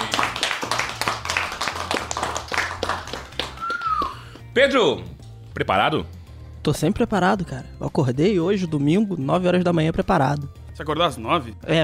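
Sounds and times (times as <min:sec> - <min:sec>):
applause: 0:00.0 - 0:04.5
speech: 0:04.6 - 0:11.8.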